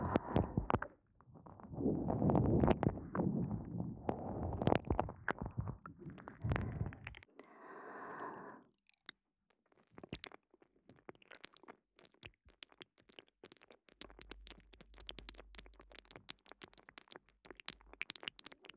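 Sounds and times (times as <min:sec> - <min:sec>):
ear licking on both ears: 0:00.0 - 0:07.2.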